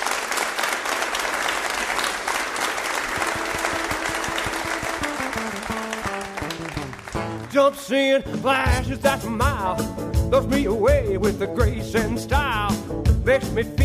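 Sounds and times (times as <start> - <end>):
audience applause: 0.0 - 7.8
band playing: 3.1 - 13.8
speech: 7.6 - 13.8.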